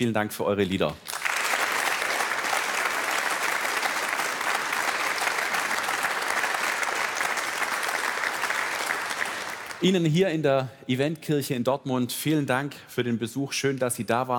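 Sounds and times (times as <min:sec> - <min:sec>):
speech: 0:00.0 - 0:01.2, 0:09.8 - 0:14.3
crowd applauding inside a church: 0:00.7 - 0:09.9.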